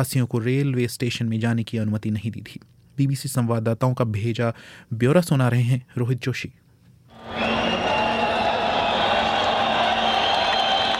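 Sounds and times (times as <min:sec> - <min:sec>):
speech: 0:00.0 - 0:06.6
crowd of migrants and refugees shouting with joy at Budapest Keleti station: 0:07.2 - 0:10.9.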